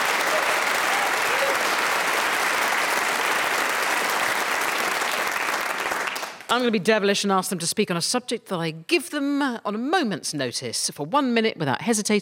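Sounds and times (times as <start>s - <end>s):
studio audience whooping and cheering: 0.0s - 6.2s
speech: 6.5s - 12.2s.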